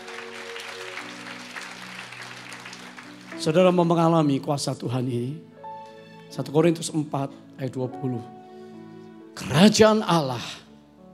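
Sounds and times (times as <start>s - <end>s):
people clapping: 0.0s - 3.8s
speech: 3.4s - 5.5s, 6.4s - 8.4s, 9.4s - 10.6s.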